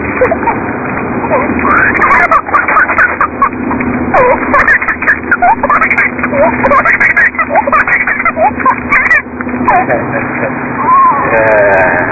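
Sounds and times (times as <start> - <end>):
person giggling: 0.2 - 0.6, 1.3 - 9.0, 9.6 - 12.1.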